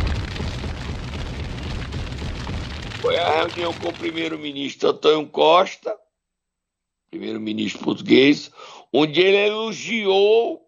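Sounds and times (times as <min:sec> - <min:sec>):
bomb explosion sound effect with heavy low rumble: 0:00.0 - 0:04.7
speech: 0:03.1 - 0:06.0, 0:07.1 - 0:10.6.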